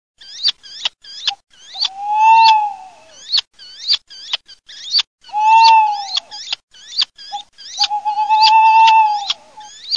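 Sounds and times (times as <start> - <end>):
tawny owl and little owl calling: 0.2 - 9.9.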